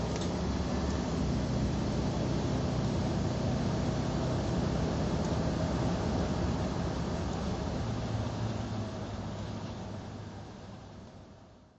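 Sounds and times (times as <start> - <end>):
Rolls-Royce Silver Shadow driving: 0.0 - 11.6.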